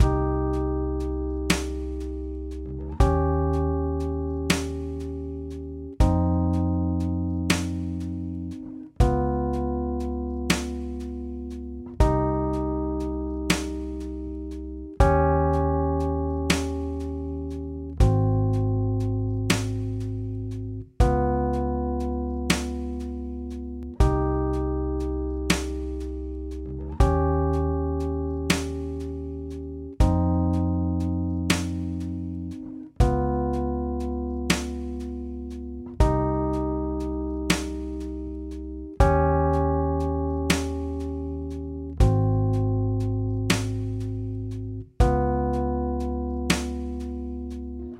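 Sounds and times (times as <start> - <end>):
musical solo loop: 0.0 - 47.9.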